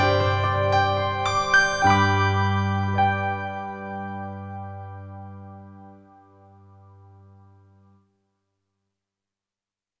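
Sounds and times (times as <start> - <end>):
pop piano music: 0.0 - 6.2.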